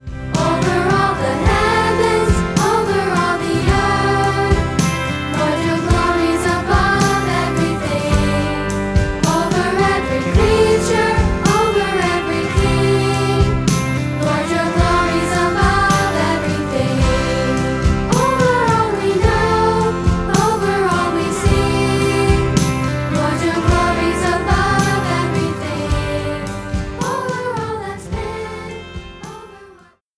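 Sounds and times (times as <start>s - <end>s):
musical instruments playing: 0.0s - 29.9s.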